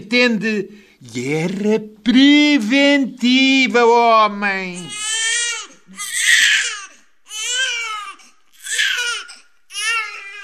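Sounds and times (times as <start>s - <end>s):
speech: 0.0s - 5.0s
newborn baby crying: 4.8s - 10.4s.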